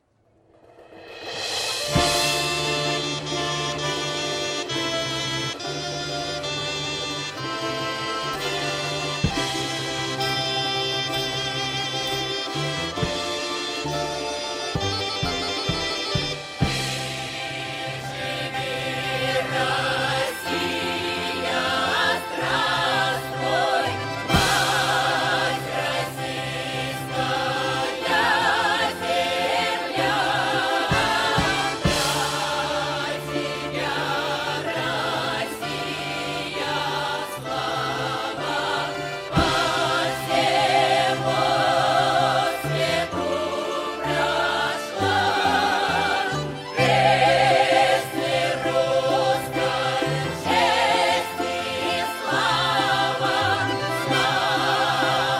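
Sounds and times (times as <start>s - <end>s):
Russian ensemble playing: 1.4s - 55.3s.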